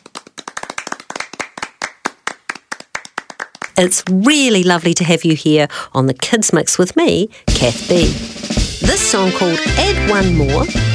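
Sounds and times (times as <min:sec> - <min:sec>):
children clapping their hands: 0:00.0 - 0:04.2
speech: 0:03.8 - 0:10.9.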